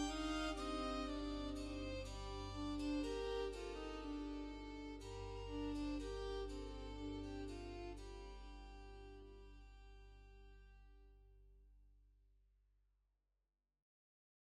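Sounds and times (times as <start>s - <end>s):
background music: 0.0s - 9.3s.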